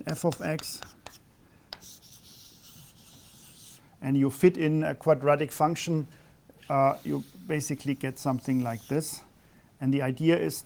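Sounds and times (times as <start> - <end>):
speech: 0.1 - 1.2, 4.0 - 10.6
faint scratchy writing strokes sketching a function graph on a board: 0.1 - 3.8, 6.6 - 9.2.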